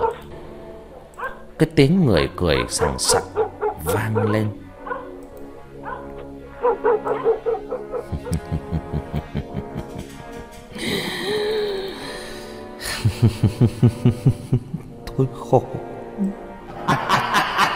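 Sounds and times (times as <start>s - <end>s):
dog barking: 0.0s - 0.3s, 1.2s - 1.5s, 2.6s - 5.2s, 5.8s - 8.1s
speech: 1.6s - 4.6s, 13.2s - 15.9s
laughter: 3.8s - 4.5s, 7.7s - 15.0s, 16.7s - 17.7s.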